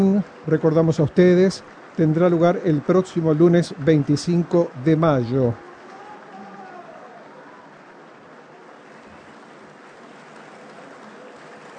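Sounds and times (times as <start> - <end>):
speech: 0.0 - 5.7
audience applause after opera performance: 2.3 - 11.7.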